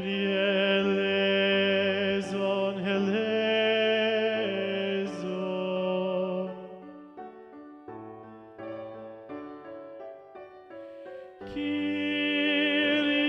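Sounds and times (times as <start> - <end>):
tenor singing: 0.0 - 7.0, 11.4 - 13.2.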